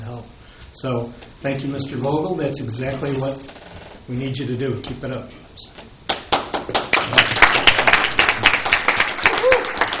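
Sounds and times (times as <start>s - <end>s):
speech: 0.8s - 5.9s
applause at a village board meeting: 6.1s - 9.9s.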